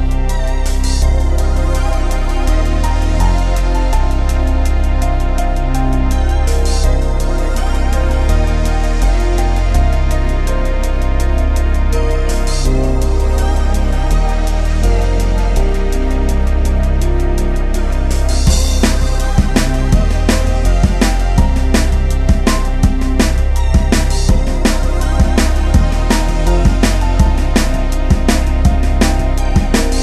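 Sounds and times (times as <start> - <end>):
drums: 0.0 - 30.0
piano: 0.0 - 30.0.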